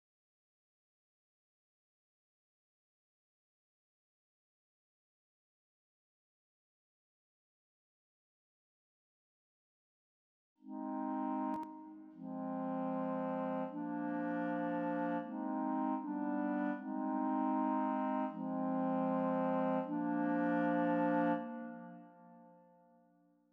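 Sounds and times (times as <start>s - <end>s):
clarinet: 10.6s - 23.0s.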